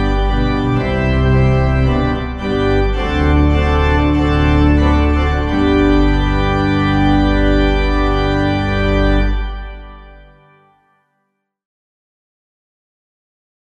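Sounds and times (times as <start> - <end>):
organ playing a hymn: 0.0 - 10.9.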